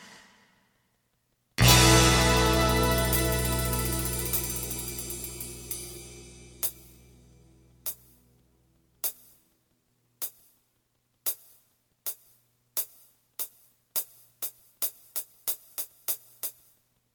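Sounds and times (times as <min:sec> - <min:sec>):
lead melody: 0:01.6 - 0:08.3.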